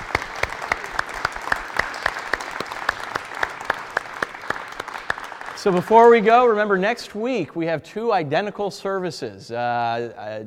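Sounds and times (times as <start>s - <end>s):
audience applauding the children: 0.0s - 6.6s
speech: 5.6s - 10.4s.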